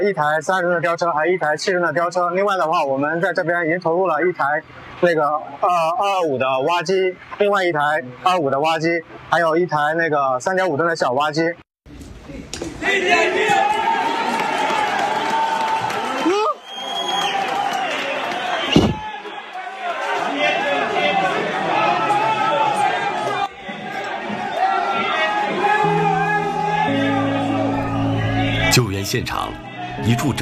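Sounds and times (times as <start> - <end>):
speech: 0.0 - 11.6, 12.8 - 13.7, 29.1 - 30.4
rescuers cheering and shouting at collapse site: 12.8 - 30.4.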